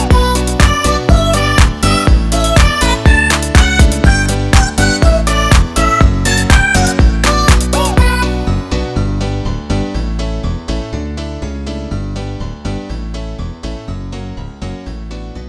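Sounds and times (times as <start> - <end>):
chiptune house music: 0.0 - 10.8.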